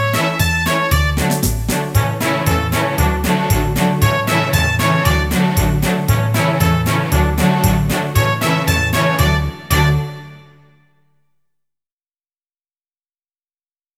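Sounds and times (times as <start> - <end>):
chanson: 0.0 - 10.6.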